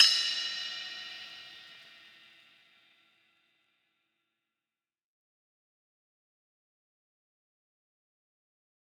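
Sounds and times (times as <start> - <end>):
ride cymbal: 0.0 - 2.2.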